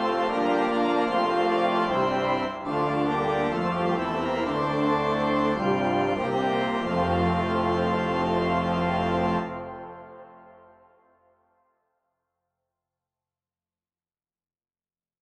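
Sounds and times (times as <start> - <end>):
organ: 0.0 - 10.9.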